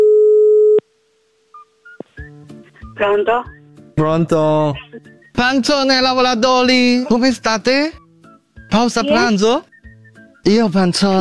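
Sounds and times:
telephone line tone as a call is placed: 0.0s - 0.8s
speech: 3.0s - 8.0s, 8.7s - 9.7s, 10.4s - 11.1s.

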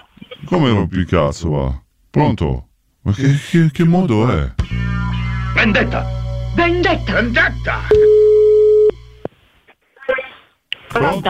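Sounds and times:
speech: 0.5s - 4.8s, 5.6s - 8.2s, 11.0s - 11.2s
telephone busy tone after call drops: 7.9s - 9.0s.

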